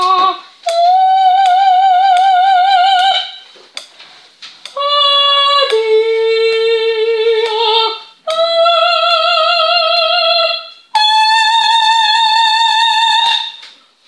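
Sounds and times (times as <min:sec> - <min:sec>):
soprano singing a pastoral piece: 0:00.0 - 0:03.5, 0:04.7 - 0:13.6.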